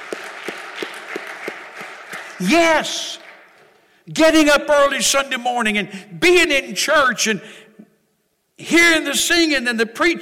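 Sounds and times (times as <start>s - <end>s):
audience clapping: 0.0s - 4.0s
speech: 2.4s - 3.2s, 4.1s - 7.6s, 8.6s - 10.2s.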